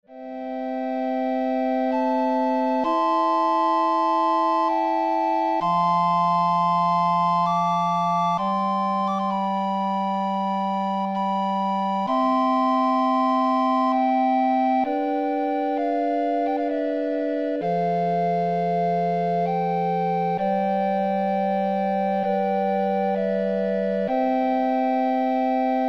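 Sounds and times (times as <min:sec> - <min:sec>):
recorder ensemble: 0:00.1 - 0:25.8.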